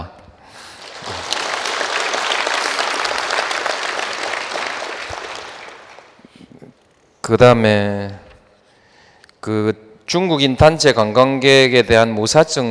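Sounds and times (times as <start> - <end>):
audience applause: 0.6 - 6.4
speech: 7.3 - 8.2, 9.4 - 12.7.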